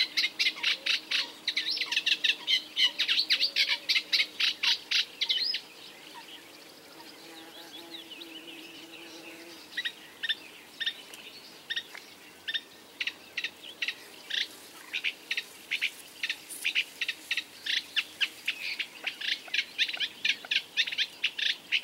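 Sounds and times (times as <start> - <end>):
reed warbler Acrocephalus scirpaceus: 0.0 - 21.8.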